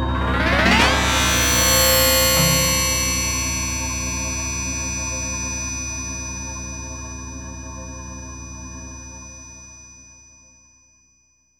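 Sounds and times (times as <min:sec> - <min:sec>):
fanfare: 0:00.1 - 0:04.9.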